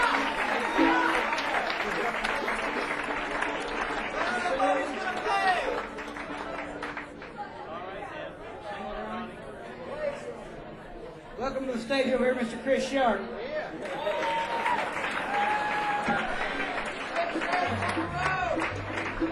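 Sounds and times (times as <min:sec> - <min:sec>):
audience clapping at a Christmas stage show: 0:00.0 - 0:07.6, 0:13.7 - 0:19.2
crowd chatter at a Christmas stage show: 0:00.0 - 0:19.2
speech: 0:12.2 - 0:13.4.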